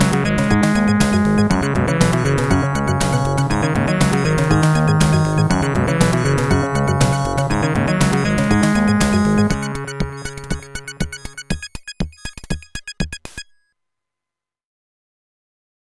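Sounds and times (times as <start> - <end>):
bass: 0.0 - 11.6.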